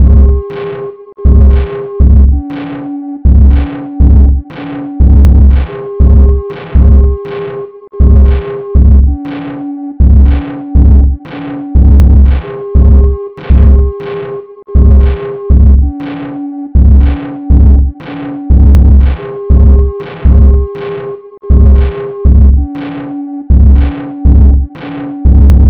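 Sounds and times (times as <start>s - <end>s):
sine wave tone: 0.0s - 25.6s.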